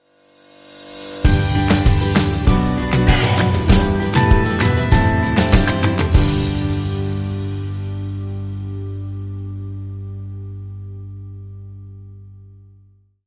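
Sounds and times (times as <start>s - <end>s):
indie music sting: 1.3s - 9.5s.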